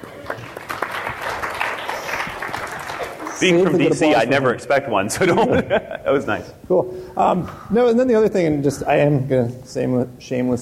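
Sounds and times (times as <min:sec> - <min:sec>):
crowd applause: 0:00.0 - 0:04.1
speech: 0:03.4 - 0:10.6
laughter: 0:05.1 - 0:06.4.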